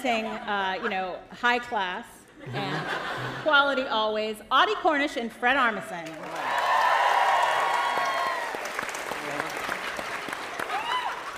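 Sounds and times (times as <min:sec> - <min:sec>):
speech: 0:00.0 - 0:06.5
laughter: 0:02.4 - 0:03.5
crowd applauding: 0:06.1 - 0:11.3
whoops and cheers: 0:06.3 - 0:08.8, 0:10.6 - 0:11.3.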